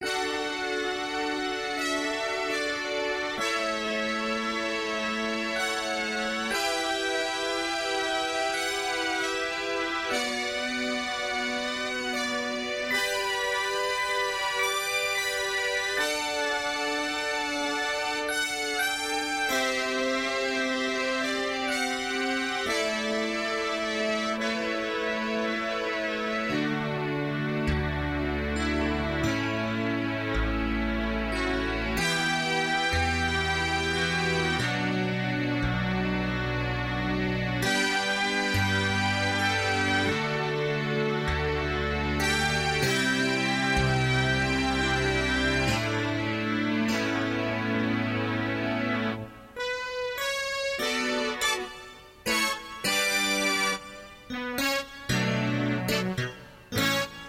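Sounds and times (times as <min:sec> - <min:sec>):
synthesizer with vintage tape effect: 0:00.0 - 0:57.2.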